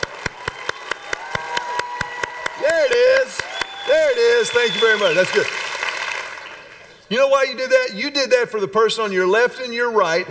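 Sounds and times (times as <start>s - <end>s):
audience applauding: 0.0s - 6.8s
speech: 3.9s - 5.6s, 7.1s - 10.2s.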